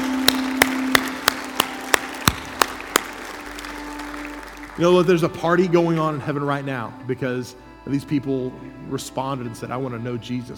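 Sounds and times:
rhythmic crowd clapping: 0.0s - 6.1s
sustained low musical drone: 0.0s - 10.5s
speech: 4.8s - 10.5s.

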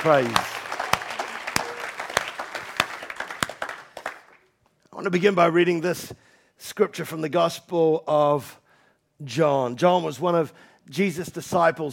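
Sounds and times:
speech: 0.0s - 0.6s, 5.0s - 8.6s, 9.2s - 11.9s
audience clapping: 0.0s - 4.6s.

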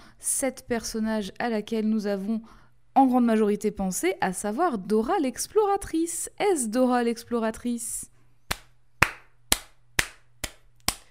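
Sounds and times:
speech: 0.2s - 8.1s
slow hand claps: 8.5s - 11.0s.

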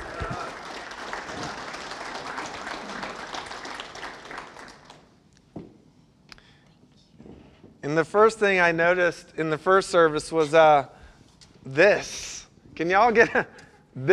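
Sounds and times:
audience applause: 0.0s - 5.1s
speech: 7.9s - 11.0s, 11.6s - 14.1s.

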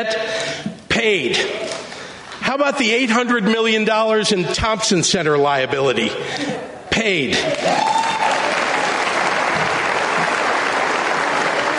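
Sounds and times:
speech: 1.0s - 1.6s, 2.5s - 8.1s
audience applause: 7.4s - 11.7s.

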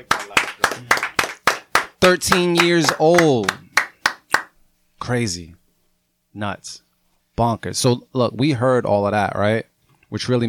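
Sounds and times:
clapping: 0.0s - 4.5s
speech: 2.0s - 3.6s, 5.0s - 5.6s, 6.4s - 6.8s, 7.4s - 10.4s.

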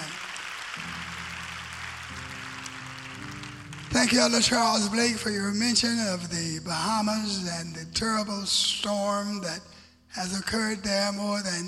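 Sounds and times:
audience clapping hands: 0.0s - 5.9s
speech: 3.9s - 11.6s.

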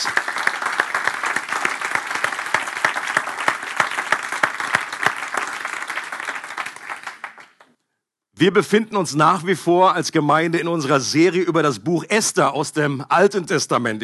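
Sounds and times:
audience applause: 0.0s - 7.7s
speech: 8.4s - 14.0s.

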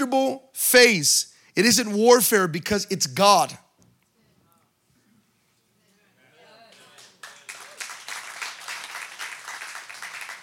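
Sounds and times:
speech: 0.0s - 3.6s
few scattered claps: 6.7s - 10.4s.

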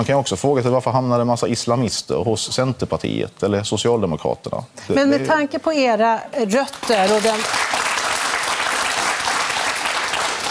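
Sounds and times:
speech: 0.0s - 7.7s
audience applause: 6.8s - 10.4s.

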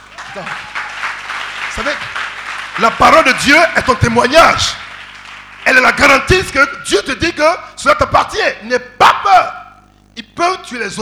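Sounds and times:
people shouting and cheering: 0.0s - 1.9s
audience applause: 0.0s - 6.2s
speech: 0.4s - 0.8s, 1.8s - 2.2s, 2.8s - 4.8s, 5.6s - 9.6s, 10.2s - 11.0s.

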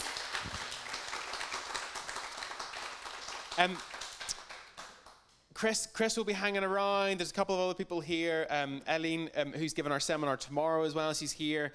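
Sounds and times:
crowd applauding: 0.0s - 5.2s
speech: 3.6s - 4.0s, 5.6s - 11.7s.

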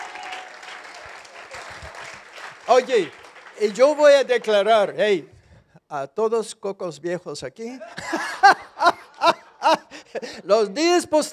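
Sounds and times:
audience applause: 0.0s - 4.7s
speech: 2.7s - 8.7s, 9.7s - 11.3s
laughter: 7.8s - 10.5s.

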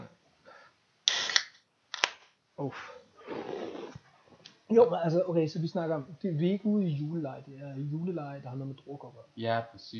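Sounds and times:
beer being opened with fizzing hiss: 1.1s - 1.6s
speech: 2.6s - 3.0s, 4.7s - 9.9s.

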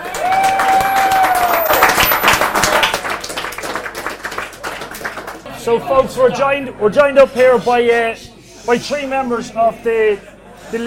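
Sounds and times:
round of applause: 0.0s - 5.5s
speech: 5.6s - 10.8s.

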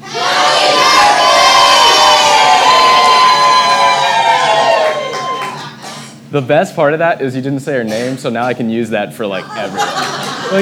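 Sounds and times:
crowd screaming and yelling at full volume: 0.0s - 5.8s
speech: 6.3s - 10.5s
laughter: 9.3s - 10.5s.

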